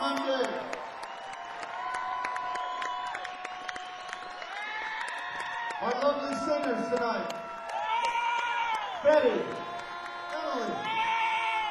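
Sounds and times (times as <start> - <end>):
audience applause and cheering: 0.0 - 11.6
speech: 6.0 - 7.4, 9.1 - 9.6.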